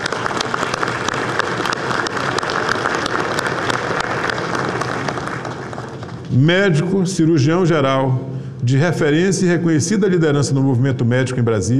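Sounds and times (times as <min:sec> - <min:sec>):
audience applause: 0:00.0 - 0:06.3
speech: 0:06.4 - 0:11.7.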